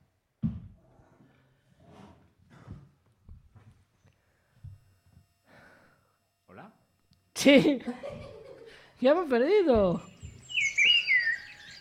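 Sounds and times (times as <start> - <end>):
speech: 7.4 - 8.3, 9.0 - 10.1
laughter: 7.4 - 8.9
person whistling a bird-like chirp: 10.2 - 11.7.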